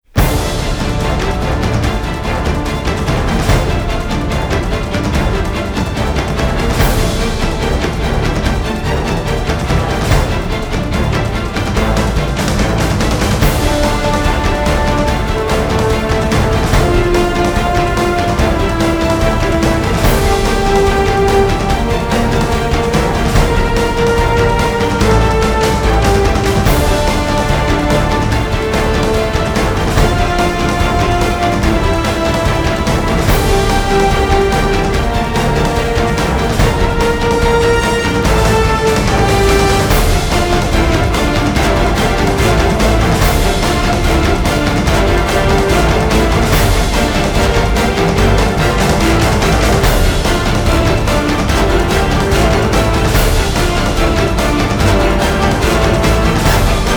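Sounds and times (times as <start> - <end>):
orchestra playing: 0.0 - 56.9.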